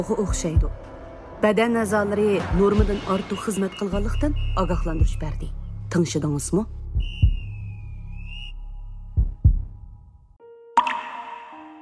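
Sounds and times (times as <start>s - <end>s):
speech: 0.0s - 7.2s
water drops plopping: 10.8s - 11.6s.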